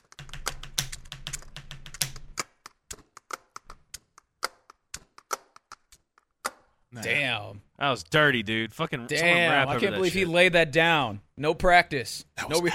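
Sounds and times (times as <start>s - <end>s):
pens tapping a beat: 0.0s - 6.7s
speech: 7.0s - 12.7s.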